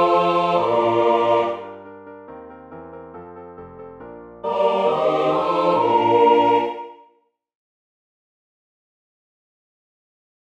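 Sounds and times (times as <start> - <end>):
full choir singing a Kyrie: 0.0 - 1.8, 4.4 - 7.2.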